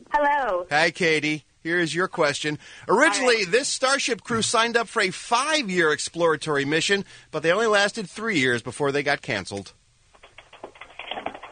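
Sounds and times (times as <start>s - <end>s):
speech: 0.2s - 9.8s
keyboard typing: 10.1s - 11.5s.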